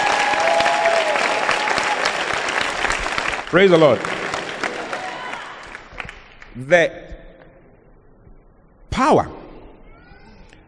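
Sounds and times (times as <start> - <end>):
audience clapping: 0.0 - 6.7
speech: 3.5 - 4.1, 6.6 - 7.0, 9.0 - 9.4.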